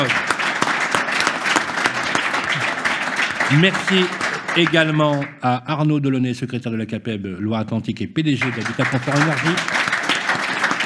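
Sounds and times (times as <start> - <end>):
studio audience applause in a radio studio: 0.0 - 5.4, 8.4 - 10.8
speech: 3.5 - 9.8.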